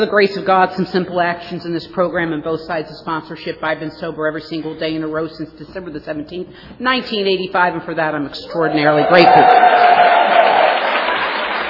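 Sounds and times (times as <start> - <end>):
speech: 0.0 - 10.2
audience applause: 9.0 - 11.6.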